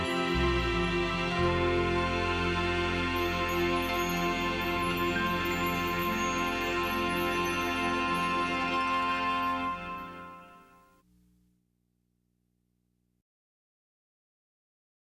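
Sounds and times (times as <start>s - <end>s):
bass: 0.0s - 10.7s.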